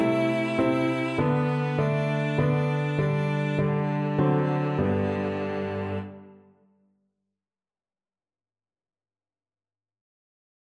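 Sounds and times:
string trio: 0:00.0 - 0:06.3.

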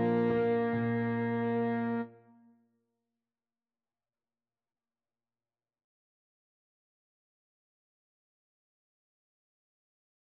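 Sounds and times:
French horn: 0:00.0 - 0:02.1.

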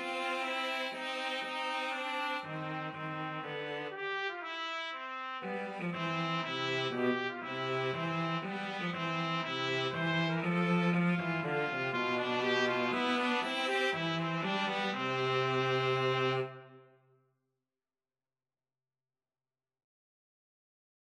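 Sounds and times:
cello playing a minuet: 0:00.0 - 0:04.6, 0:05.4 - 0:16.9
trumpet playing a minuet: 0:00.0 - 0:17.0.

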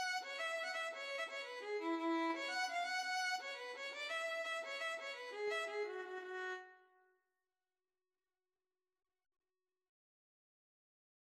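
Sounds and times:
violin: 0:00.0 - 0:06.8.

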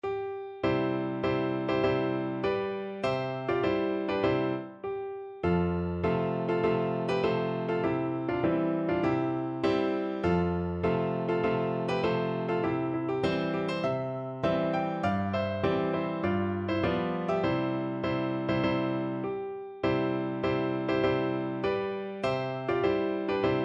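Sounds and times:
piano march: 0:00.0 - 0:23.6.

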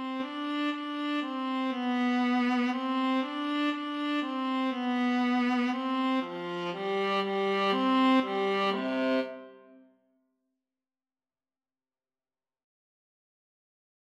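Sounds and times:
violas playing a minuet: 0:00.0 - 0:09.7.

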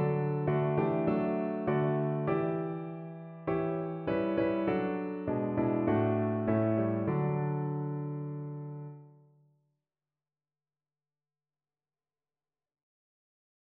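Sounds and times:
piano piece: 0:00.0 - 0:09.1.

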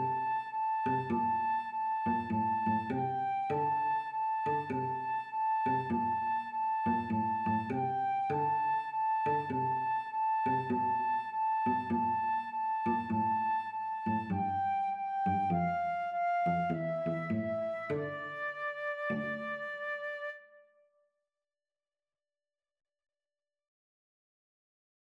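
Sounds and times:
cello in a duet: 0:00.0 - 0:20.0
flute in a duet: 0:00.0 - 0:20.8.

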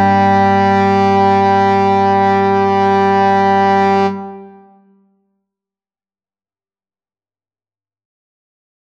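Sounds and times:
trombone sonata: 0:00.0 - 0:04.9.

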